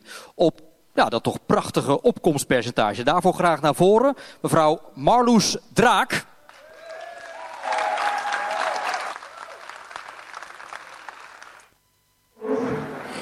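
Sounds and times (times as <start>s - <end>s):
speech: 0.4s - 6.3s
loud applause in a hall: 6.4s - 11.7s.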